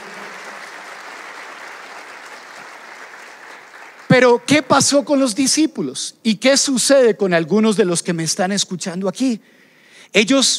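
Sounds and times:
audience applauding loudly: 0.0s - 4.9s
speech: 4.2s - 10.5s.

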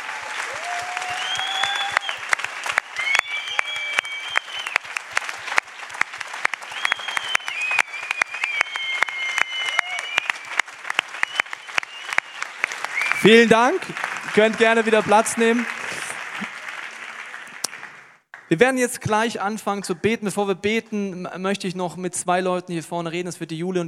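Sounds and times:
audience applause: 0.0s - 18.5s
whistles: 0.6s - 5.0s, 6.6s - 13.3s
speech: 13.2s - 15.8s, 18.5s - 23.8s.

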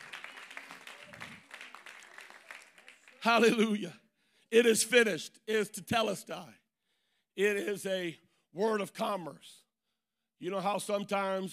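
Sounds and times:
audience clapping hands: 0.0s - 3.9s
speech: 3.2s - 6.6s, 7.4s - 9.6s, 10.4s - 11.5s.

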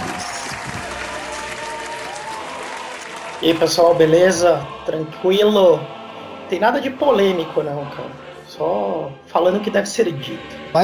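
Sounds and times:
applause: 0.0s - 4.0s
speech: 3.4s - 10.8s.

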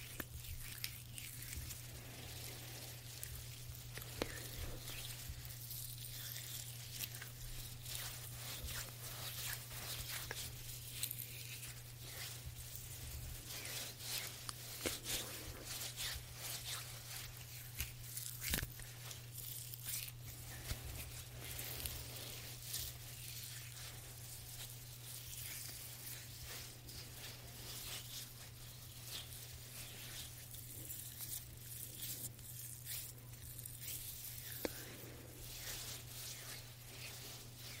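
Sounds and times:
soft rubbing and brushing of hand massage: 0.0s - 37.7s.

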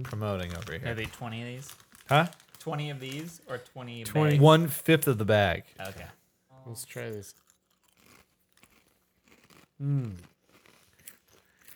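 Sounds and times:
bite into a barbecue-flavoured chip: 0.0s - 3.6s, 6.8s - 11.7s
speech: 0.0s - 7.4s, 9.8s - 10.3s.

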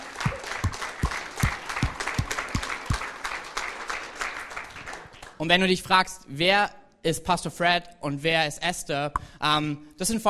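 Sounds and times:
audience applause: 0.0s - 5.4s
speech: 5.4s - 10.2s.

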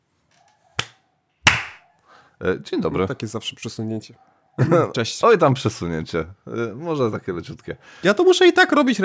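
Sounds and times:
hands clapping: 1.5s - 1.8s
speech: 2.4s - 9.0s
laughter: 4.6s - 5.0s.

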